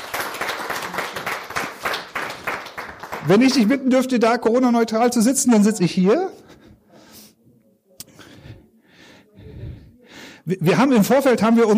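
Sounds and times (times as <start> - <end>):
audience applause: 0.0 - 3.9
speech: 3.2 - 6.5, 10.5 - 11.7.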